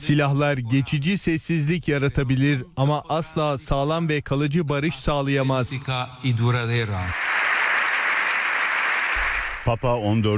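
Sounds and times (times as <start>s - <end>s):
speech: 0.0s - 7.3s, 9.6s - 10.3s
standing ovation applause in parliament: 6.9s - 10.2s.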